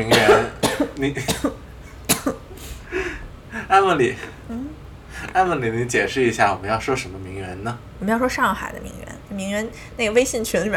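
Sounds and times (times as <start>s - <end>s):
speech: 0.0s - 1.6s, 3.7s - 4.7s, 5.3s - 10.7s
cough: 0.1s - 2.4s.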